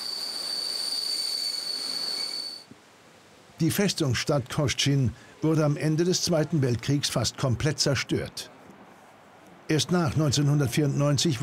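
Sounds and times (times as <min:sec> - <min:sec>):
diesel locomotive train running on rails: 0:00.0 - 0:02.7
speech: 0:03.6 - 0:08.5, 0:09.7 - 0:11.4.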